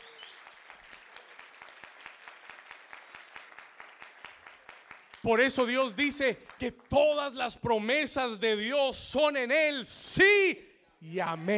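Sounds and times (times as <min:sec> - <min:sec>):
crowd applauding: 0:00.0 - 0:07.4
speech: 0:05.2 - 0:11.5.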